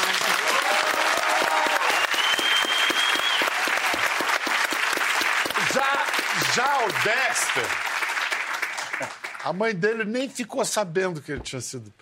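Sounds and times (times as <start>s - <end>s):
audience applause: 0.0s - 9.6s
speech: 6.8s - 7.9s, 9.0s - 12.0s.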